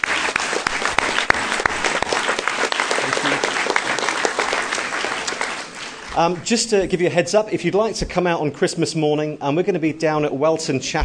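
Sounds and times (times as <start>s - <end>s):
audience applause: 0.0s - 6.5s
speech: 6.2s - 11.0s.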